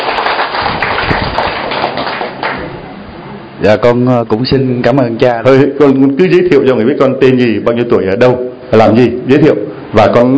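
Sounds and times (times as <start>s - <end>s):
crowd applauding: 0.0s - 2.8s
speech: 3.6s - 10.3s.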